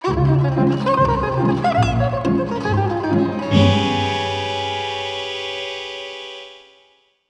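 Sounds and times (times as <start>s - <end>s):
baritone saxophone: 0.0s - 5.6s.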